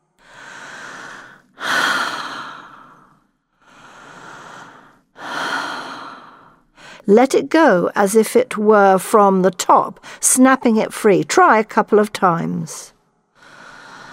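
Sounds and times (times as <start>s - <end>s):
deep breaths through the mouth as a relaxation exercise: 0.2s - 7.1s, 13.4s - 14.1s
speech: 7.1s - 13.0s.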